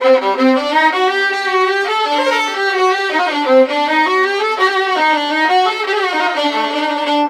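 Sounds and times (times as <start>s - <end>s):
Balkan-style traditional music: 0.0s - 7.2s.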